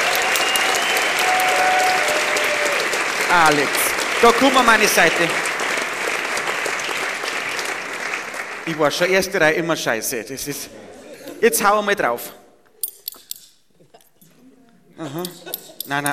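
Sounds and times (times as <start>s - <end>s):
audience clapping: 0.0s - 9.4s
speech: 3.3s - 5.4s, 8.7s - 10.8s, 11.4s - 12.4s, 15.1s - 16.1s
laughter: 10.5s - 11.7s, 13.8s - 16.1s.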